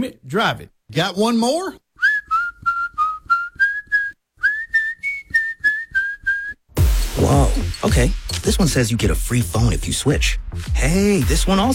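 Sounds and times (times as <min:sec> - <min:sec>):
speech: 0:00.0 - 0:01.8, 0:07.2 - 0:11.7
person whistling: 0:02.0 - 0:07.7.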